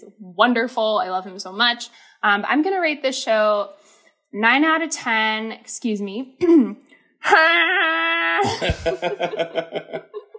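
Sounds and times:
speech: 0:00.3 - 0:10.2
voice imitating a woman's wailing moan: 0:07.9 - 0:10.1
short choppy laughter: 0:08.4 - 0:10.3.

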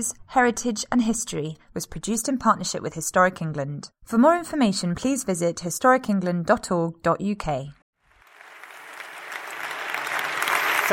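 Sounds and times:
speech: 0:00.0 - 0:07.8
audience applauding a speaker at a public discussion: 0:08.1 - 0:10.9.

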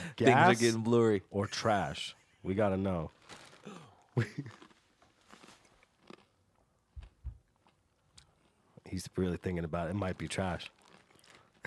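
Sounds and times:
speech: 0:00.1 - 0:04.6, 0:08.9 - 0:10.8
chewing a mouthful of sour cereal: 0:03.3 - 0:08.8, 0:10.0 - 0:11.6.

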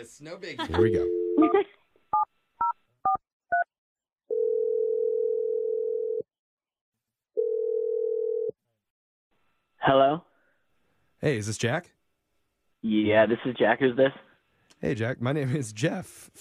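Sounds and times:
speech: 0:00.0 - 0:01.8, 0:09.8 - 0:10.3, 0:11.2 - 0:12.0, 0:12.8 - 0:16.3
long steady telephone ringing tones: 0:04.3 - 0:06.2, 0:07.4 - 0:08.5.

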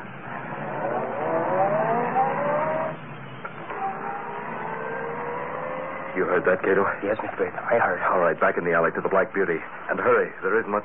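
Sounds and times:
car engine starting and revving: 0:00.0 - 0:07.4
speech: 0:06.4 - 0:10.8.

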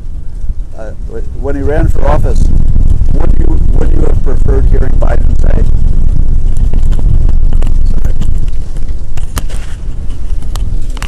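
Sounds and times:
strong wind blowing into the microphone: 0:00.0 - 0:11.0
speech: 0:00.8 - 0:02.6, 0:04.5 - 0:05.8.

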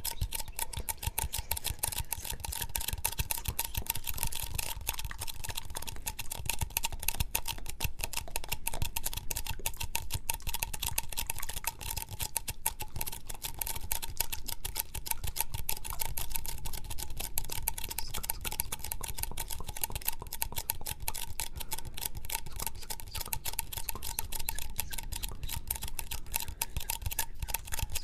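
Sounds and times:
mouth sounds: 0:00.0 - 0:06.1, 0:17.5 - 0:28.0
faint constant tone: 0:00.0 - 0:28.0
sticky tapping: 0:00.0 - 0:28.0.

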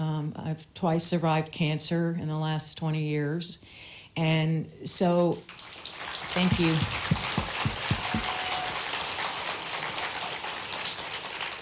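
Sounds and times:
speech: 0:00.3 - 0:05.7, 0:06.3 - 0:07.2
audience applause: 0:05.6 - 0:11.6
low thumps: 0:06.4 - 0:08.5.

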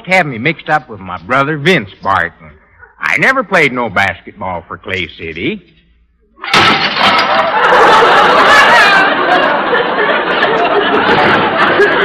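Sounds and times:
speech: 0:00.1 - 0:05.8, 0:06.4 - 0:10.2, 0:10.9 - 0:12.0
dishes crashing to the floor: 0:06.4 - 0:08.2
crowd laughter: 0:06.4 - 0:12.0
crowd chatter: 0:07.2 - 0:12.0.

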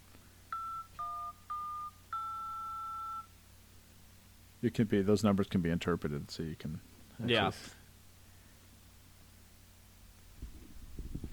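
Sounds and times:
faint hiss: 0:00.0 - 0:11.3
telephone keypad dialing tones: 0:00.5 - 0:03.3
speech: 0:04.6 - 0:07.8.

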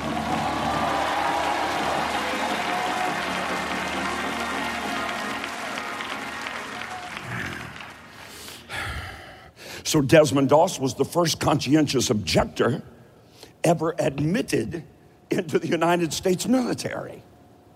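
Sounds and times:
large indoor crowd clapping: 0:00.0 - 0:08.7
speech: 0:09.9 - 0:12.9, 0:13.6 - 0:17.3.

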